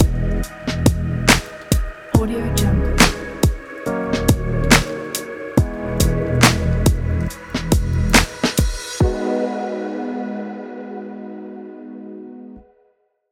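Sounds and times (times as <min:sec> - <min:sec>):
short chilled abstract beat: 0:00.0 - 0:10.6.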